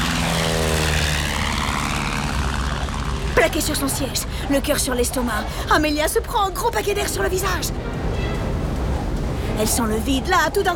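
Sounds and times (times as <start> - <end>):
propeller airplane engine roaring at full power for takeoff: 0.0 - 9.5
speech: 3.4 - 8.0, 9.6 - 10.7.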